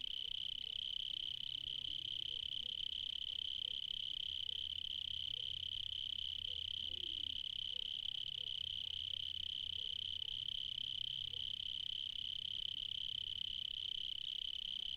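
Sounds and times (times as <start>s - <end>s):
cricket chirping in the evening in Spain: 0.0s - 14.9s.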